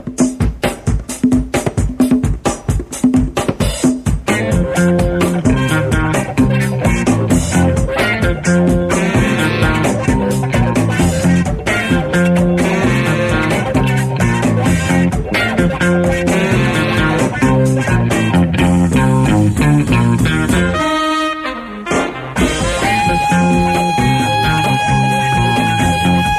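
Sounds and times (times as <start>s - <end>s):
hardgroove techno music: 0.1s - 20.9s, 21.9s - 26.3s.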